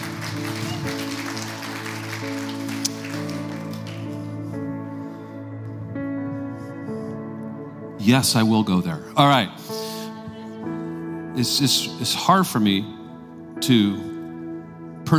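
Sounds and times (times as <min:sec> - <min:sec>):
audience clapping: 0:00.0 - 0:04.4
sustained keyboard chords: 0:00.0 - 0:15.1
speech: 0:08.0 - 0:09.8, 0:11.4 - 0:13.0, 0:13.6 - 0:14.1.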